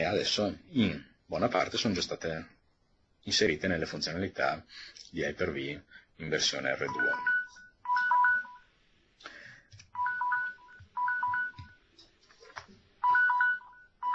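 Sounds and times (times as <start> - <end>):
speech: 0.1 - 2.6, 3.2 - 7.3
electronic alarm beeping a quick high-pitched melody: 6.9 - 8.7, 10.0 - 11.8, 13.0 - 14.1.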